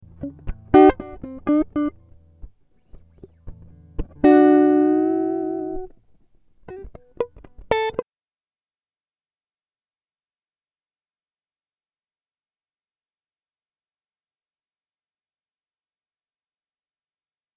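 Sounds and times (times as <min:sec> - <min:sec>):
Am60 guitar improvisation: 0:00.0 - 0:08.0.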